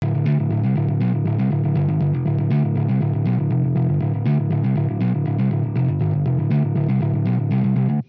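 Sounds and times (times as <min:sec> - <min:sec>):
hybrid neural guitar overdrive through bass amp: 0:00.0 - 0:08.0.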